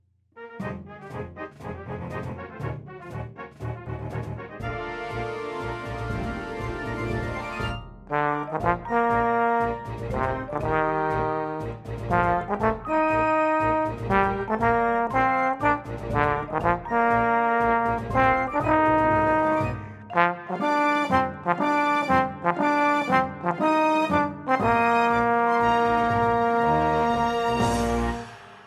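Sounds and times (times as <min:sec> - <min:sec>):
trombone: 0:00.4 - 0:28.4.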